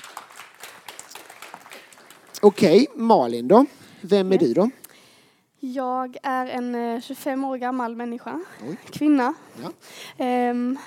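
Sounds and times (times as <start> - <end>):
audience applause: 0.0 - 2.9
speech: 2.4 - 4.8, 5.6 - 10.8.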